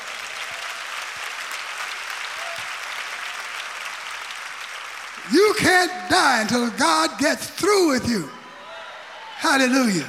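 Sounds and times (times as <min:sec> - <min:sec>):
audience clapping hands: 0:00.0 - 0:07.2
speech: 0:05.3 - 0:08.4, 0:09.4 - 0:10.0.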